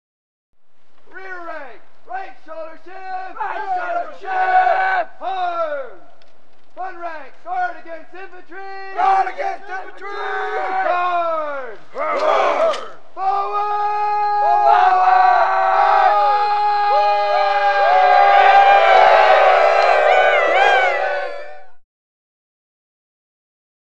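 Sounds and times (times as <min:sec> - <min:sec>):
angry Civil War troops: 0:03.0 - 0:06.0, 0:08.9 - 0:21.7.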